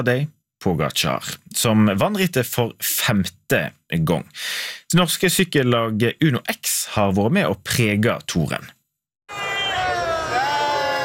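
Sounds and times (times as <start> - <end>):
speech: 0.0 - 9.4
crowd cheering for the Uno-X team at the Tour de France finish on the Champs-Élysées: 9.3 - 11.0.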